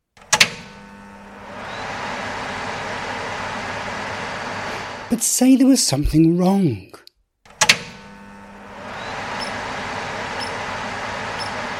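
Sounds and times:
desk fan running properly: 1.2 - 5.2, 8.6 - 11.7
speech: 5.1 - 7.0.

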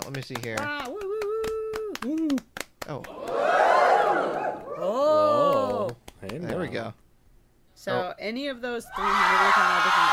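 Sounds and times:
speech: 0.1 - 1.2, 2.0 - 3.6, 6.2 - 7.0, 7.8 - 10.1
crowd cheering sound effect: 3.1 - 6.0, 8.9 - 10.1.

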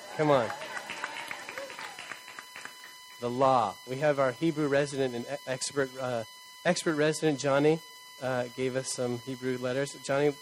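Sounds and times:
audience clapping: 0.0 - 3.1
speech: 0.2 - 0.6, 3.2 - 10.4.

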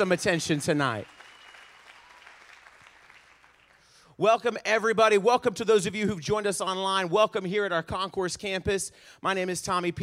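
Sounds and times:
speech: 0.0 - 1.2, 4.2 - 10.0
audience clapping: 0.0 - 4.0.

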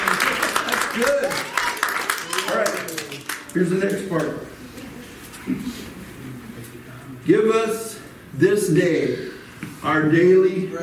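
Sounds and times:
people clapping: 0.0 - 4.4
speech: 1.0 - 1.6, 3.6 - 4.5, 7.2 - 10.8.

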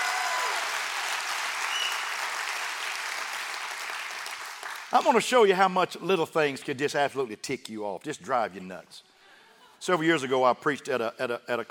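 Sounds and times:
audience clapping hands: 0.0 - 5.3
speech: 4.9 - 9.1, 9.8 - 11.7.

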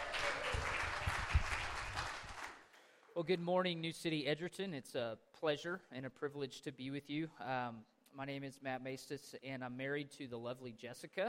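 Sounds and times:
church congregation at New City Church in Edgerton clapping for a guest speaker: 0.0 - 3.2
speech: 3.2 - 11.2.

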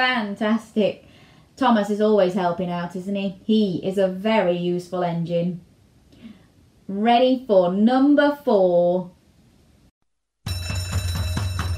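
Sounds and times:
speech: 0.0 - 5.7, 6.9 - 9.2
fire alarm ringing: 10.5 - 11.7.

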